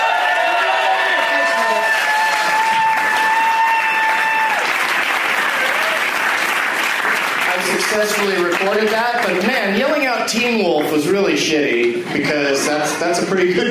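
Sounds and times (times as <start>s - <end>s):
audience applause: 0.0s - 9.8s
speech: 8.0s - 13.7s.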